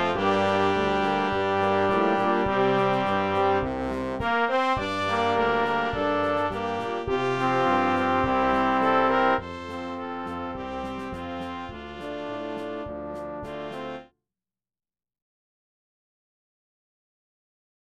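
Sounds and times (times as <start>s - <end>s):
brass march: 0.0s - 14.1s.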